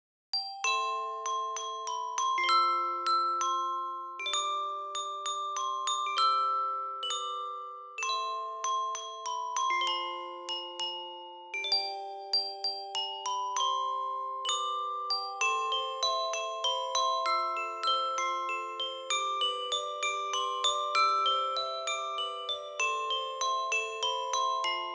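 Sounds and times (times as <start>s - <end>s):
music box: 0.4s - 24.9s.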